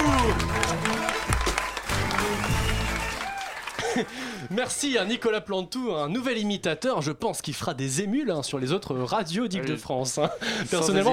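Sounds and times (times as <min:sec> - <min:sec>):
audience applause: 0:00.0 - 0:04.8
speech: 0:04.0 - 0:11.1.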